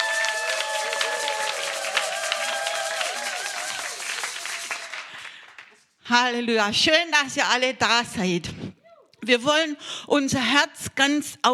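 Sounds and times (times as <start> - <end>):
audience applause: 0.0 - 5.9
speech: 6.1 - 8.6, 9.3 - 11.5.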